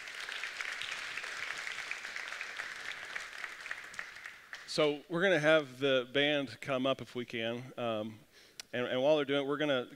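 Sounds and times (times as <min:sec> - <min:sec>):
audience applause: 0:00.0 - 0:04.8
speech: 0:04.8 - 0:09.9.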